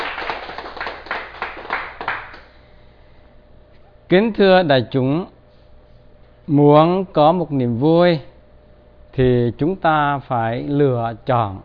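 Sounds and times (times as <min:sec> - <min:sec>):
audience applause: 0:00.0 - 0:02.5
speech: 0:04.1 - 0:05.4, 0:06.5 - 0:08.3, 0:09.2 - 0:11.6.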